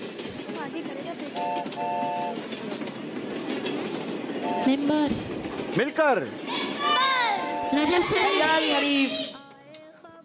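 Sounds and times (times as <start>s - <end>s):
train rumbling on rails: 0.0s - 9.4s
train horn blasts: 1.4s - 2.4s, 7.4s - 8.0s
speech: 4.7s - 6.4s, 7.7s - 9.2s.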